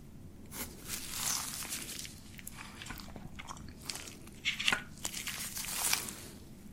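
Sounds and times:
beard treatment sounds: 0:00.8 - 0:06.4.

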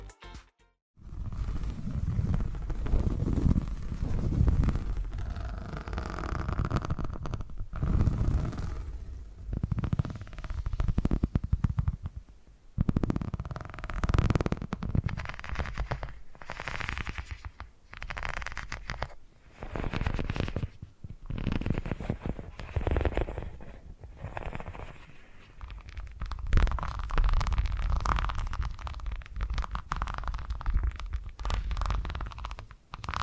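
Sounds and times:
soft low purring rumble: 0:01.0 - 0:20.7, 0:21.2 - 0:33.2.

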